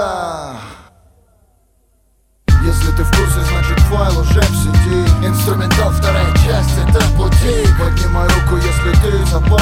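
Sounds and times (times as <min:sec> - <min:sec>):
instrumental music: 0:02.5 - 0:09.5.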